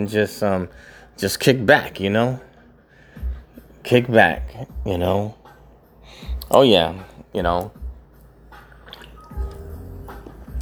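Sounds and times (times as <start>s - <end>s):
speech: 0.0s - 2.5s, 3.8s - 5.4s, 6.1s - 7.8s
person sipping Japanese beer: 8.6s - 10.6s.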